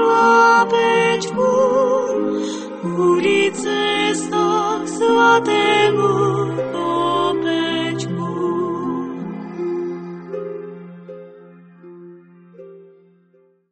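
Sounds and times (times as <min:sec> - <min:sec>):
person singing: 0:00.0 - 0:10.7.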